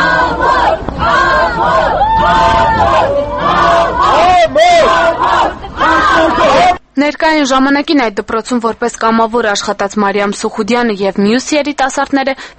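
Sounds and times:
crowd with placards shouting at a defendant in a courthouse yard: 0.0s - 6.8s
speech: 7.3s - 12.5s.

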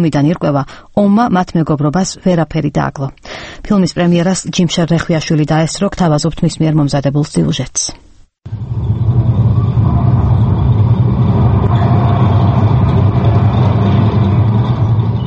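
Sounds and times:
speech: 0.0s - 8.9s
tank rumbling forward in a film: 8.5s - 15.2s.

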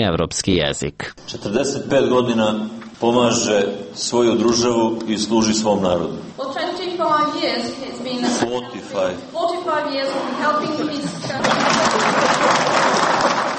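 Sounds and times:
speech: 0.0s - 12.5s
laughter: 10.2s - 13.5s
student applause for Serbian president Tomislav Nikolić: 11.3s - 13.5s.

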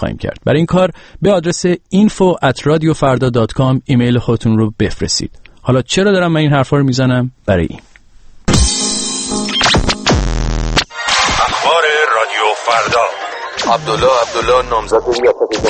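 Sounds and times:
speech: 0.0s - 7.9s, 12.2s - 15.6s
harsh radio jamming static: 9.6s - 15.6s.

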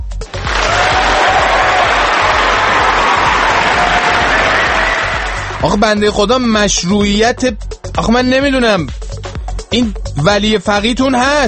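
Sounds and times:
audience applause: 0.3s - 5.7s
speech: 5.6s - 9.0s, 9.7s - 11.4s.

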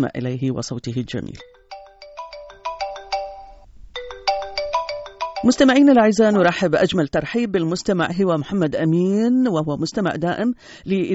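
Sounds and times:
speech: 0.0s - 1.5s, 5.4s - 11.1s
electronic telephone ringtone during a radio phone-in call: 1.4s - 6.0s.

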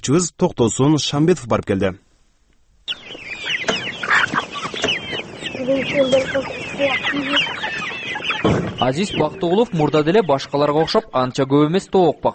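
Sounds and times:
speech: 0.0s - 2.1s, 5.7s - 7.6s, 8.4s - 12.3s
farm geese, ducks and turkeys clucking and calling: 2.9s - 11.8s.

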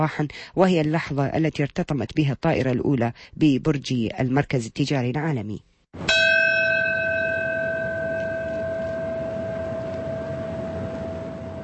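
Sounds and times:
speech: 0.0s - 6.2s
memorial bells tolling at the former World Trade Center site: 6.0s - 11.6s.

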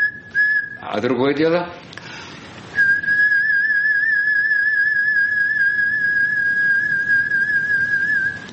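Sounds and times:
person whistling: 0.0s - 0.9s, 2.8s - 8.5s
speech: 0.9s - 2.0s.

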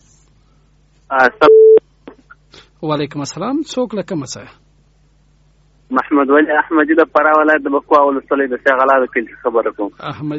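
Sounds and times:
speech: 1.1s - 1.6s, 2.8s - 4.6s, 5.9s - 10.3s
telephone line beep as a listener's call is put through: 1.5s - 1.8s.

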